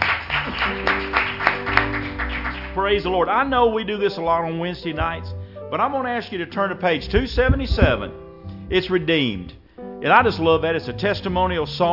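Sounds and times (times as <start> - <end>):
church congregation clapping hands in praise during a Wednesday night service: 0.0 - 3.1
sustained instrumental chords: 0.0 - 11.9
speech: 2.9 - 11.9.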